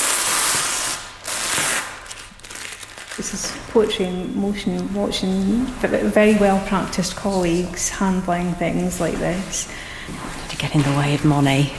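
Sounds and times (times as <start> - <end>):
paper tape unwrapping from a painting: 0.0 - 3.7
speech: 3.2 - 11.7.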